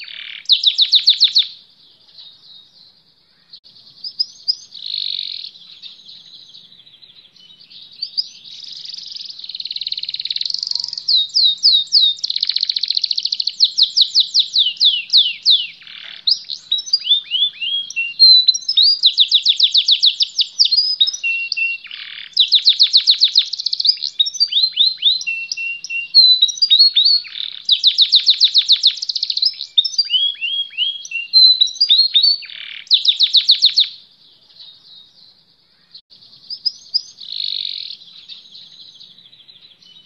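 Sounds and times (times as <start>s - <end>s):
canary singing: 0.0s - 40.0s.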